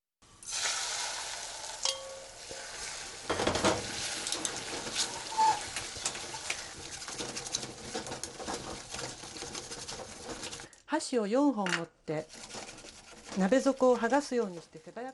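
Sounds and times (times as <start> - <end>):
eggs sizzling in a pot: 0.3 - 10.8, 12.2 - 15.1
utensils stirring and scraping against a metal pot: 1.9 - 10.8, 12.1 - 15.1.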